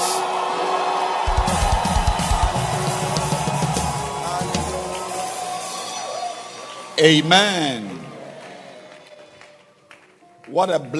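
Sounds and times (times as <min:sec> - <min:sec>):
audience shouting: 0:00.0 - 0:06.9
audience clapping: 0:01.2 - 0:05.6, 0:07.8 - 0:10.6
speech: 0:07.0 - 0:07.9, 0:10.6 - 0:10.9.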